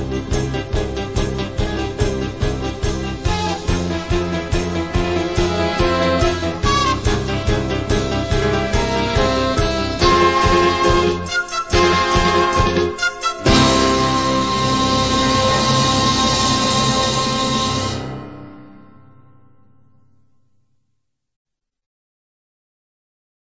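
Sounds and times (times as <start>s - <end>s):
battle music: 0.0s - 18.6s.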